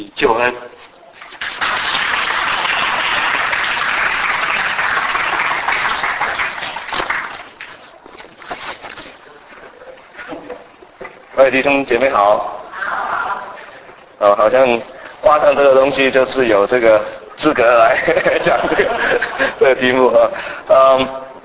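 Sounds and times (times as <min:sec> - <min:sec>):
speech: 0:00.0 - 0:00.9, 0:11.4 - 0:12.6, 0:14.2 - 0:21.2
audience applause: 0:01.3 - 0:07.9
laughter: 0:17.7 - 0:19.8.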